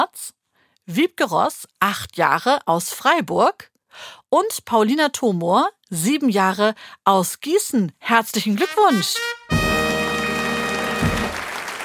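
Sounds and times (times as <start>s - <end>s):
speech: 0.2s - 9.5s
sustained brass fanfare chord: 8.6s - 11.8s
drum roll: 9.5s - 11.6s.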